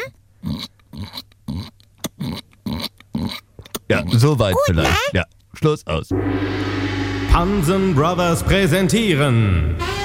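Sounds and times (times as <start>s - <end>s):
human voice imitating a piglet squealing: 0.0s - 5.2s
speech: 0.1s - 1.2s, 3.9s - 6.8s, 7.4s - 9.9s.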